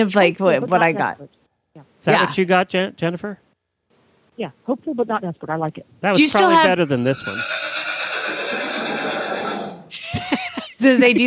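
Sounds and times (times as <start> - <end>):
speech: 0.0 - 3.4, 4.4 - 7.8, 10.8 - 11.2
pony neighing: 6.2 - 9.9
laughter: 9.9 - 11.2.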